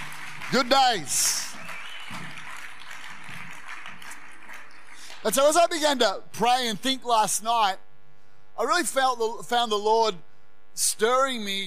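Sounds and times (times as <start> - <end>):
audience clapping: 0.0 - 5.8
speech: 0.5 - 1.5, 5.2 - 7.8, 8.6 - 11.6.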